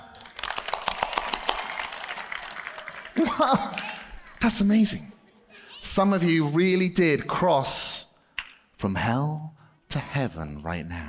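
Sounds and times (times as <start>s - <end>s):
audience clapping: 0.0s - 5.0s
laughter: 3.0s - 6.8s
speech: 3.2s - 5.2s, 5.8s - 7.8s, 8.8s - 11.0s.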